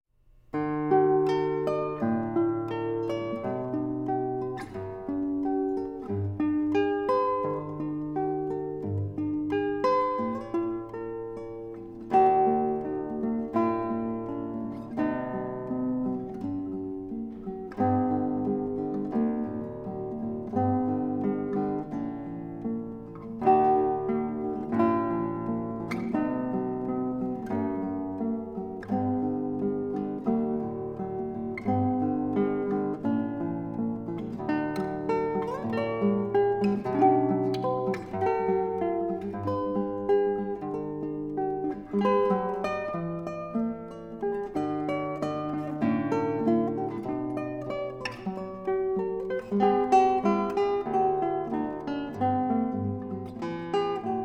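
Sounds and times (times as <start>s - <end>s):
classical piece in D major arranged for guitar: 0.2s - 54.2s.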